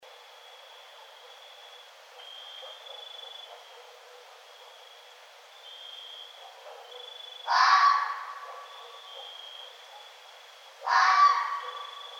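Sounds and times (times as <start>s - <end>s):
red fox harsh grating call: 7.5s - 8.9s, 10.8s - 12.1s.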